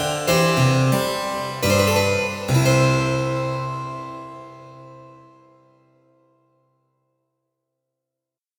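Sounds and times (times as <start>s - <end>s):
keyboard prelude in C major: 0.0s - 5.9s.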